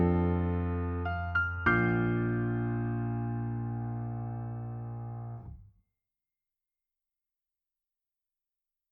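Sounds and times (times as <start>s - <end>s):
piano: 0.0s - 5.7s.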